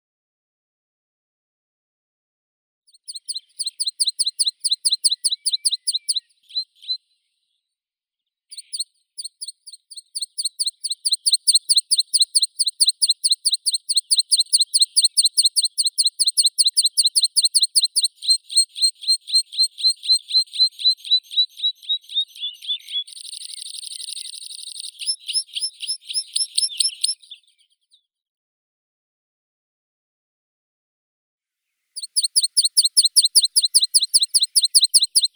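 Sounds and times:
meadow pipit Anthus pratensis: 3.0s - 7.0s, 8.6s - 27.4s, 32.0s - 35.3s.

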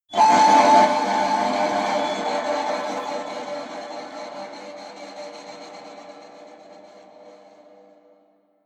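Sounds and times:
cutting horn: 0.2s - 4.8s.

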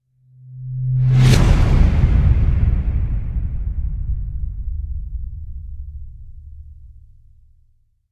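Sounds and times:
whoosh: 0.3s - 7.6s
slams: 1.1s - 7.4s.

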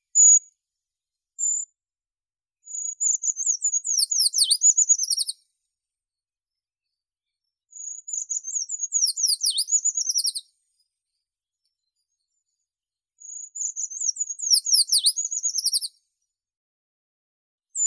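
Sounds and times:
Eurasian treecreeper Certhia familiaris calling: 4.0s - 5.3s, 8.9s - 10.4s, 14.4s - 15.9s.

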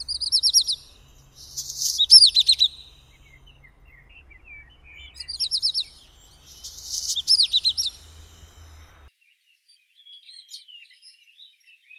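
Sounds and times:
black redstart Phoenicurus ochruros singing: 0.0s - 9.1s.

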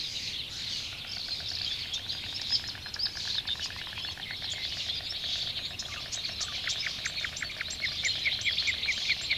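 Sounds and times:
starlings: 0.1s - 9.3s.

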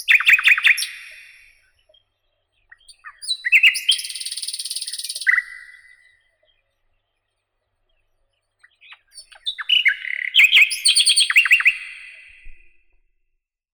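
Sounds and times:
thrush nightingale Luscinia luscinia singing: 0.0s - 12.7s.

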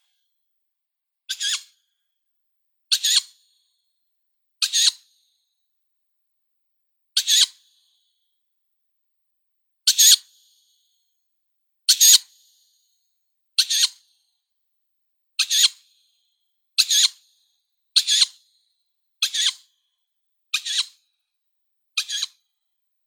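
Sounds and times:
Strix aluco fledglings calling: 1.3s - 1.7s, 2.9s - 3.3s, 4.6s - 5.0s, 7.2s - 7.6s, 9.9s - 10.2s, 13.6s - 14.0s, 15.4s - 15.8s, 16.8s - 17.2s, 18.0s - 18.4s, 19.2s - 19.6s, 20.5s - 21.0s, 22.0s - 22.4s.

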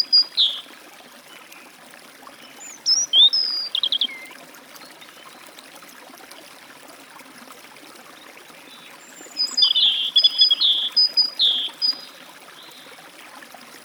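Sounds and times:
great tit at a forest stream: 0.0s - 0.6s, 2.6s - 4.4s, 9.1s - 12.8s
European robin at a forest stream: 0.0s - 0.7s, 2.5s - 4.4s, 8.8s - 12.8s
forest stream flowing: 0.0s - 13.8s.

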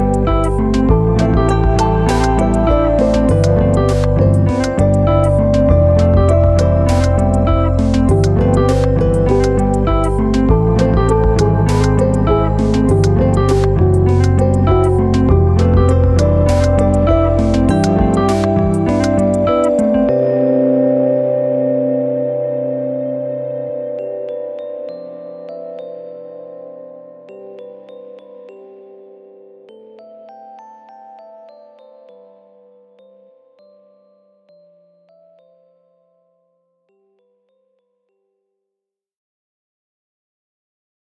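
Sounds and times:
unplugged instrumental music: 0.0s - 24.5s.

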